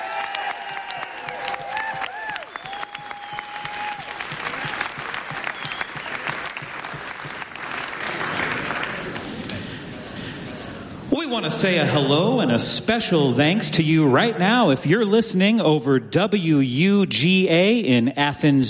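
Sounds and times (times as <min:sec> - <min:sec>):
audience applause: 0:00.0 - 0:09.8
speech: 0:11.3 - 0:18.6.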